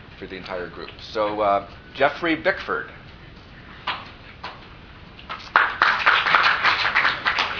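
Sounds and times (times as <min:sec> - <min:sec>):
speech: 0:00.2 - 0:03.0
audience clapping: 0:05.3 - 0:07.5.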